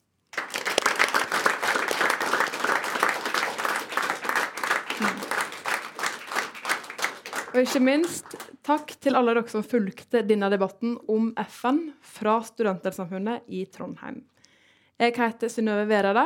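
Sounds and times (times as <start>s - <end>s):
audience applause: 0.3s - 8.5s
speech: 7.6s - 14.3s, 15.0s - 16.2s.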